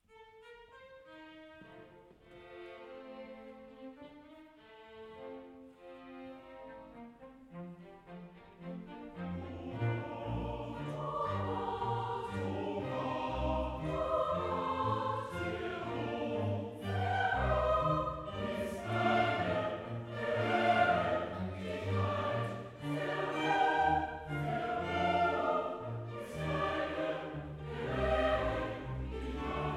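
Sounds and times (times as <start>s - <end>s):
choir singing: 8.0s - 29.7s.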